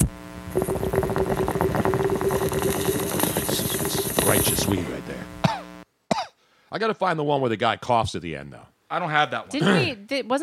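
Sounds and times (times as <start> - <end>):
low hum: 0.0 - 5.8
water bubbling and gurgling: 0.5 - 4.8
speech: 4.7 - 5.0, 6.8 - 10.4.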